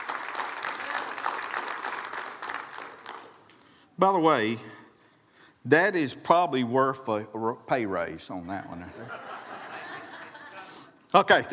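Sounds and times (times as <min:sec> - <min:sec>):
crowd of worshippers applauding: 0:00.0 - 0:03.7
speech: 0:04.0 - 0:04.8, 0:05.6 - 0:09.3, 0:11.1 - 0:11.5
laughter: 0:08.7 - 0:11.5.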